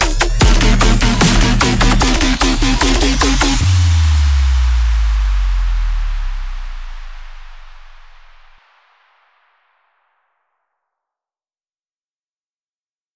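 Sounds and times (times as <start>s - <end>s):
bass drop: 0.0s - 8.6s.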